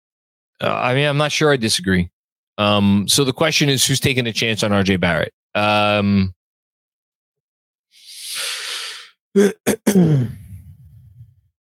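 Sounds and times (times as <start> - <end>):
speech: 0.6 - 6.4, 9.3 - 10.4
airy exhale: 8.0 - 9.2
man clearing his throat: 9.4 - 10.6
low rumbling grunt: 9.4 - 11.3.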